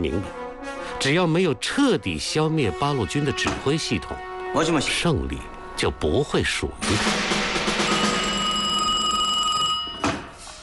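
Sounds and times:
speech: 0.0s - 0.4s, 1.0s - 7.4s
telephone ringing: 7.5s - 10.3s.

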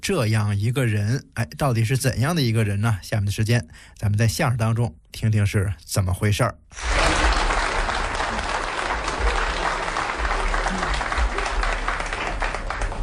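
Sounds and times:
speech: 0.0s - 7.2s
audience applause: 6.8s - 13.0s.

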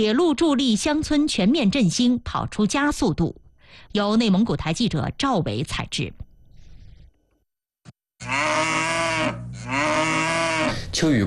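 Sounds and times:
speech: 0.0s - 6.2s, 11.0s - 11.2s
beef cattle mooing in a pen: 8.2s - 10.9s.

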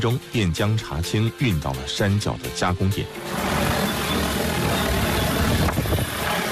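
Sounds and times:
speech: 0.0s - 3.8s
agricultural drone rotors roaring over a hilltop tea garden: 2.9s - 6.5s.

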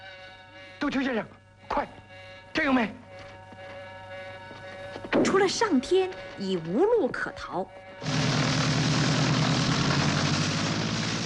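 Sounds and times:
speech: 0.8s - 3.0s, 5.2s - 8.2s
aircraft engine starting and taking off: 8.0s - 11.2s.

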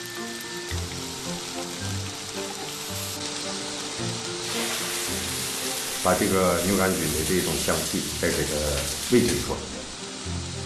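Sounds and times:
pork belly frying on iron griddle: 0.0s - 10.6s
speech: 6.0s - 9.8s.

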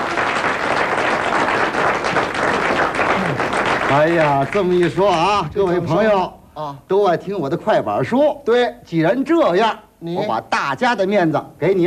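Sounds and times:
audience clapping: 0.0s - 5.5s
speech: 3.9s - 11.8s.

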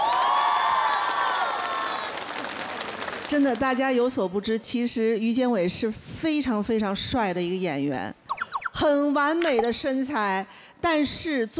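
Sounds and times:
audience applause for a dancer: 0.0s - 3.8s
speech: 3.3s - 8.2s, 8.8s - 11.5s.

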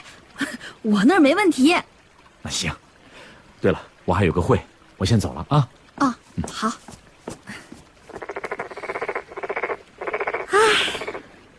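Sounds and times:
speech: 0.8s - 1.9s, 2.5s - 2.8s, 3.6s - 7.0s
toad croaking: 8.1s - 11.2s.

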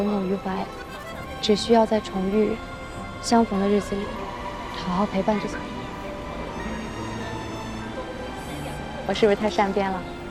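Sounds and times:
speech: 0.0s - 5.8s, 9.1s - 10.1s
subway train ride rumble and hum: 0.0s - 10.2s.

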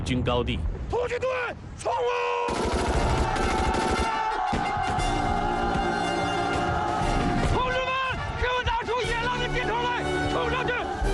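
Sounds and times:
speech: 0.0s - 3.8s
battle din: 2.3s - 11.1s
heavy machine gun firing: 2.5s - 4.2s.

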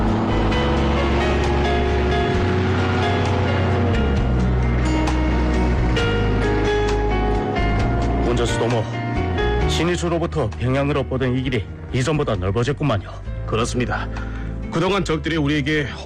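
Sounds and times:
military jeep engine driving along a dusty road: 0.0s - 10.0s
speech: 10.0s - 16.0s.

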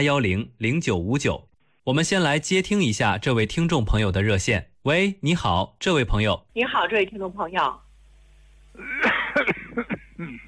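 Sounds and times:
speech: 0.0s - 7.8s, 8.8s - 10.4s
cough: 8.8s - 10.4s.

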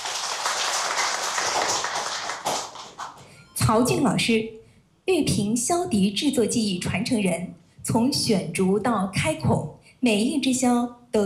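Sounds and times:
audience applause: 0.0s - 3.2s
speech: 3.7s - 11.2s.

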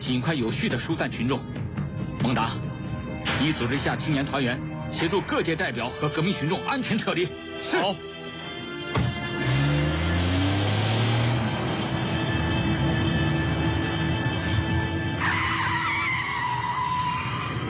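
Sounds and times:
speech: 0.1s - 1.6s, 2.2s - 8.1s
car engine accelerating hard: 8.8s - 15.8s
abrupt thump: 8.9s - 9.2s
high tire squeal: 9.4s - 17.6s.

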